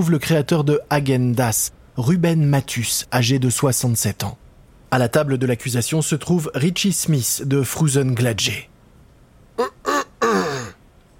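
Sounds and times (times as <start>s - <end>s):
speech: 0.0s - 8.7s, 9.6s - 9.8s
judge clearing his throat in a courtroom: 9.6s - 10.8s.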